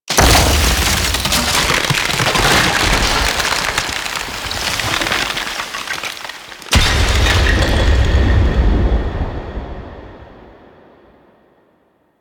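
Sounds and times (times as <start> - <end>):
ice sculpture breaking: 0.1 - 8.7.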